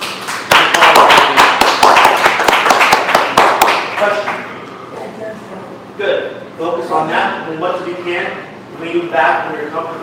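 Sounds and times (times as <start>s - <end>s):
audience applause: 0.0s - 4.2s
speech: 7.0s - 10.0s.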